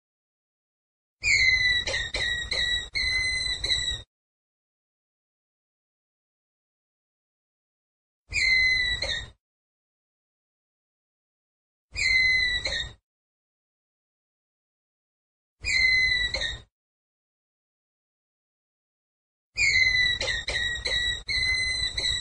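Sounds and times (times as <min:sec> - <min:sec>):
ground squirrel whistled call: 0:01.2 - 0:04.0, 0:08.3 - 0:09.3, 0:12.0 - 0:13.0, 0:15.6 - 0:16.7, 0:19.6 - 0:22.1.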